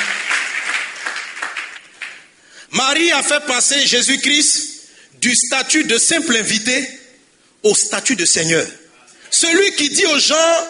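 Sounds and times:
church congregation applauding during a French-language sermon: 0:00.0 - 0:02.6
speech: 0:02.7 - 0:04.6, 0:05.2 - 0:07.0, 0:07.6 - 0:10.6.

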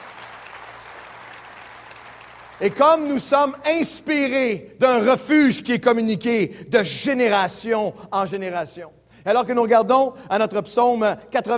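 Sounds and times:
audience applauding: 0:00.0 - 0:03.0
speech: 0:02.6 - 0:11.5.

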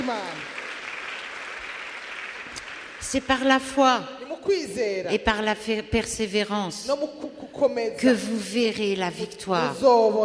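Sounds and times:
congregation applauding and cheering: 0:00.0 - 0:04.6
speech: 0:03.0 - 0:10.2.

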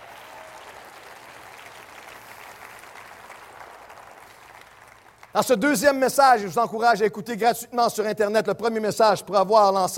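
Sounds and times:
audience applause: 0:00.0 - 0:05.4
speech: 0:05.4 - 0:09.9.

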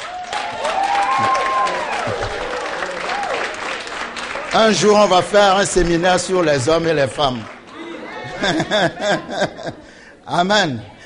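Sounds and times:
church audience applauding to acclaim women: 0:00.0 - 0:07.8
laughter: 0:01.2 - 0:03.1, 0:07.7 - 0:10.0
speech: 0:04.5 - 0:07.5, 0:08.4 - 0:10.9.

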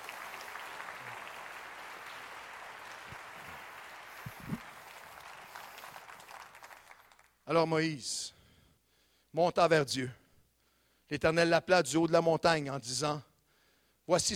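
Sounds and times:
audience applause: 0:00.0 - 0:07.4
speech: 0:07.5 - 0:08.4, 0:09.3 - 0:10.2, 0:11.1 - 0:13.3, 0:14.1 - 0:14.3.

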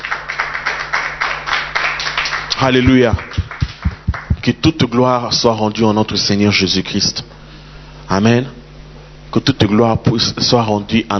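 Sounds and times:
church congregation clapping to acclaim the Lord: 0:00.0 - 0:04.5
speech: 0:02.6 - 0:03.5, 0:04.4 - 0:07.3, 0:08.1 - 0:08.6, 0:09.3 - 0:11.1.

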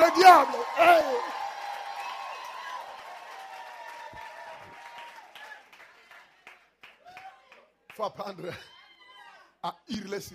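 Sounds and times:
audience shouts and whoops: 0:00.0 - 0:05.6, 0:07.0 - 0:07.7, 0:08.5 - 0:09.5
audience clapping: 0:00.0 - 0:08.4
speech: 0:08.0 - 0:08.8, 0:09.6 - 0:10.3.

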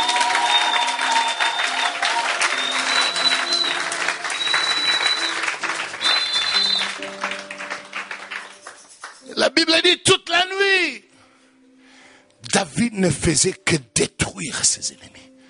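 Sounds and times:
audience applauding: 0:00.0 - 0:09.2
speech: 0:09.5 - 0:11.0, 0:12.6 - 0:15.2.

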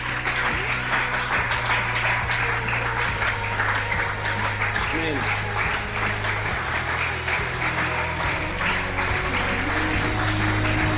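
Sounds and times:
congregation clapping during a church service: 0:00.0 - 0:10.9.

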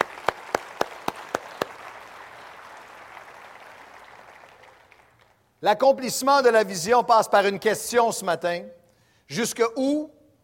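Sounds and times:
audience applauding: 0:00.0 - 0:05.4
speech: 0:05.6 - 0:10.2.

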